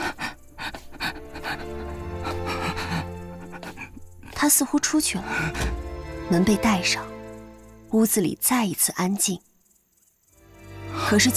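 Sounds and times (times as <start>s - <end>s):
heavy panting breaths: 0.0s - 4.2s
speech: 4.4s - 7.1s, 7.9s - 9.5s, 11.1s - 11.3s.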